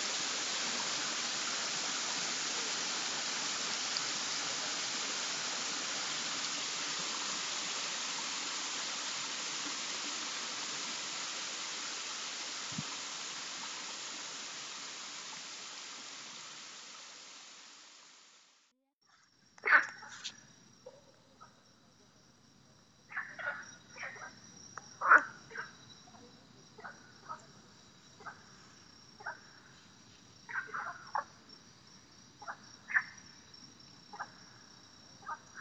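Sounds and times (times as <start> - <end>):
spring water flowing: 0.0 - 18.4
frog croaks: 19.6 - 21.6, 23.1 - 27.6, 28.2 - 28.6, 29.2 - 29.7, 30.5 - 31.4, 32.4 - 33.4, 34.1 - 35.5.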